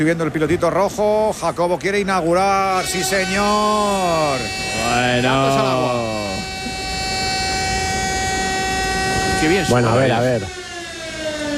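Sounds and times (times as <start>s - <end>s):
speech: 0.0s - 6.4s, 9.4s - 10.6s
alarm: 2.7s - 11.5s.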